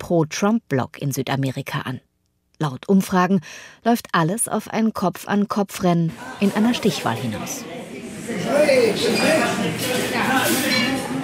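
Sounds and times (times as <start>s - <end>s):
speech: 0.1s - 10.6s
murmur of overlapping voices in a busy restaurant: 6.1s - 11.2s
clinking dishes and cutlery: 9.1s - 11.2s.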